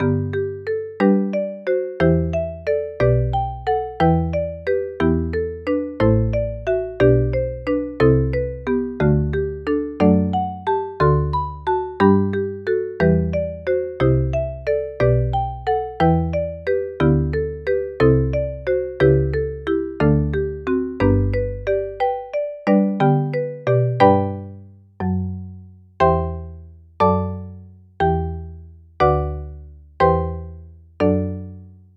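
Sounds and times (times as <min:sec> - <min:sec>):
marimba: 0:00.0 - 0:25.4, 0:26.0 - 0:27.4, 0:29.0 - 0:31.4.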